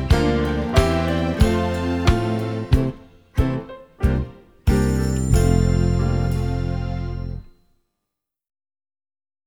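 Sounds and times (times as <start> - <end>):
trombone sightreading: 0.0 - 7.4.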